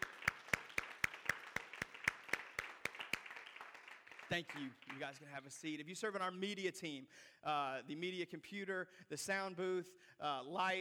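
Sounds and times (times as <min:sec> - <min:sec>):
audience applause: 0:00.0 - 0:05.3
strong steady beat of unison claps: 0:00.0 - 0:05.4
speech: 0:04.3 - 0:10.8.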